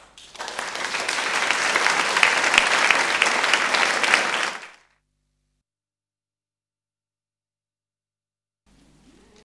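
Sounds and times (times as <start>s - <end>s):
applause: 0.0s - 4.9s.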